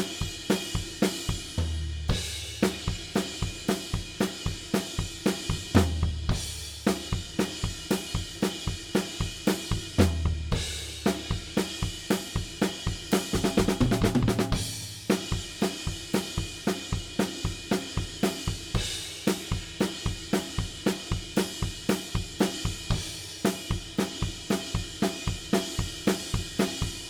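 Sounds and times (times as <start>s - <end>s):
drums: 0.0s - 27.0s.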